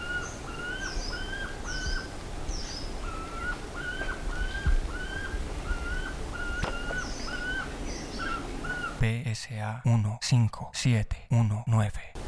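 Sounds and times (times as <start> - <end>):
low background rumble: 0.0 - 9.0
whistled bird calls: 0.0 - 9.0
speech: 9.0 - 12.1.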